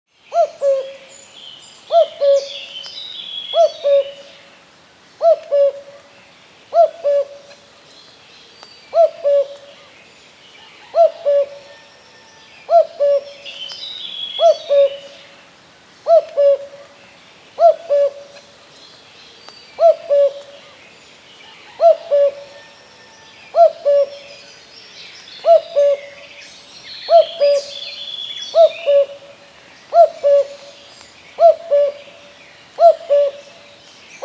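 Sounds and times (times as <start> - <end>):
common cuckoo giving two-note cu-coo calls: 0.3 - 1.1, 1.9 - 4.3, 5.2 - 6.0, 6.7 - 7.6, 8.9 - 9.9, 10.6 - 15.2, 16.0 - 16.9, 17.6 - 18.5, 19.8 - 20.8, 21.4 - 24.5, 25.4 - 26.3, 27.0 - 29.3, 29.9 - 33.6.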